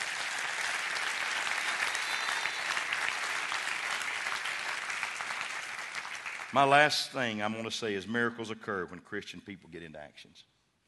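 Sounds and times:
audience clapping hands: 0.0s - 7.0s
speech: 6.5s - 10.8s.

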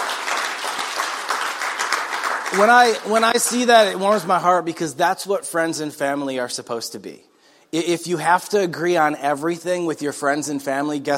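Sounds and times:
audience applause: 0.0s - 3.6s
speech: 2.5s - 11.1s.

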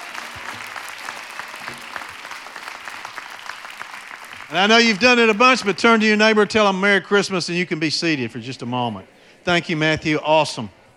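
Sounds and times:
audience applause: 0.0s - 6.5s
speech: 4.5s - 10.8s.

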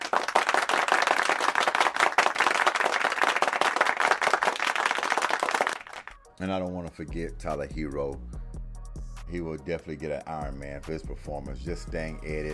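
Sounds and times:
round of applause: 0.0s - 6.2s
speech: 6.4s - 8.3s, 9.3s - 12.5s.

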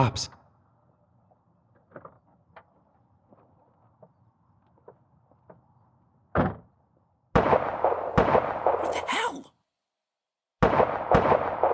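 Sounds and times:
speech: 0.0s - 0.4s
gunshots fired at car tires: 7.4s - 9.3s, 10.6s - 11.7s.

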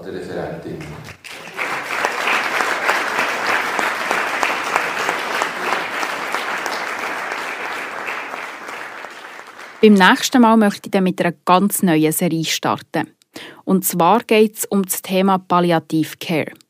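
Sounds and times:
speech: 0.0s - 1.2s, 9.8s - 16.6s
audience applause: 0.8s - 10.2s.

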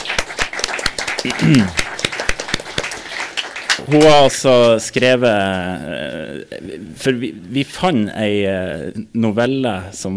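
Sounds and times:
studio audience applause: 0.0s - 4.8s
speech: 1.2s - 1.8s, 3.8s - 10.1s.

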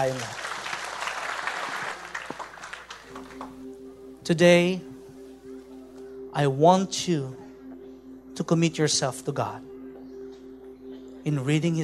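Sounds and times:
speech: 0.0s - 0.4s, 4.3s - 4.9s, 6.4s - 7.4s, 8.4s - 9.7s, 11.2s - 11.8s
faint congregation applause at a church service: 0.0s - 3.6s.

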